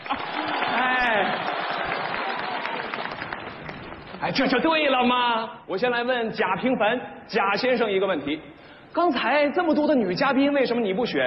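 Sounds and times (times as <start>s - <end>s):
audience applause: 0.0s - 4.6s
speech: 4.3s - 11.2s.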